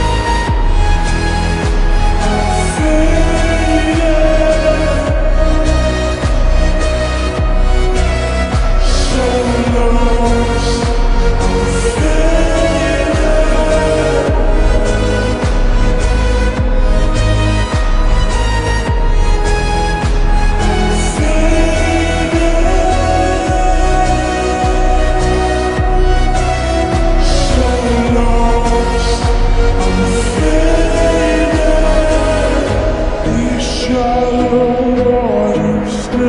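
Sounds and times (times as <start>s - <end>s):
slowed reverb music with boosted bass: 0.0s - 36.2s.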